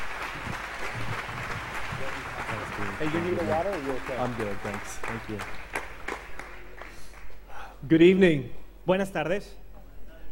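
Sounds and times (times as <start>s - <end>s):
audience applause welcoming a speaker: 0.0s - 7.4s
speech: 3.0s - 5.7s, 7.8s - 9.6s.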